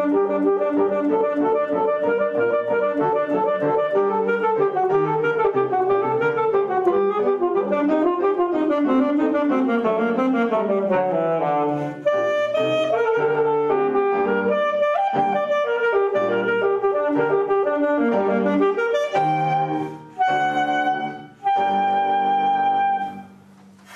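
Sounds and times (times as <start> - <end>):
alto sax playing a sonata solo accompaniment: 0.0 - 23.9.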